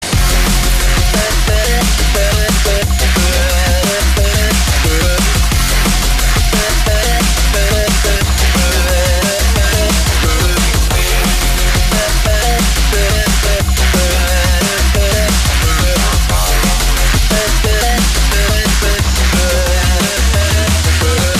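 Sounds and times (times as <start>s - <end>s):
rock music: 0.0s - 21.3s.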